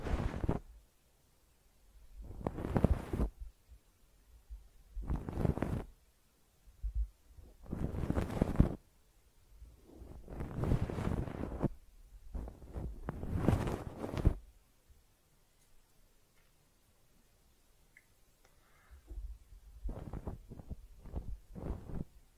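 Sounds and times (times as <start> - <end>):
ear cleaning scratching and rustling: 0.0 - 0.7, 2.2 - 3.4, 5.0 - 5.9, 7.4 - 8.8, 9.8 - 14.4, 19.8 - 22.2.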